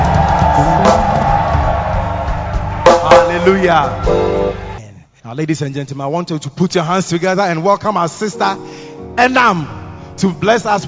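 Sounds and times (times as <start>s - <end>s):
church congregation cheering and shouting praise: 0.0s - 4.8s
speech: 3.4s - 4.4s, 5.2s - 10.8s.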